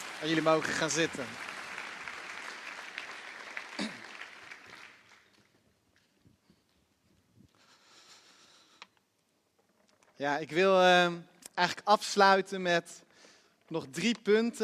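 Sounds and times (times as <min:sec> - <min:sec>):
audience applause: 0:00.0 - 0:05.5
speech: 0:00.2 - 0:01.5, 0:10.2 - 0:13.1, 0:13.7 - 0:14.6.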